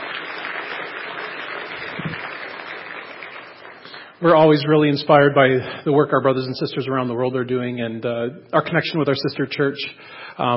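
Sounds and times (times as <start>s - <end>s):
audience applause: 0.0s - 4.2s
speech: 4.2s - 10.5s.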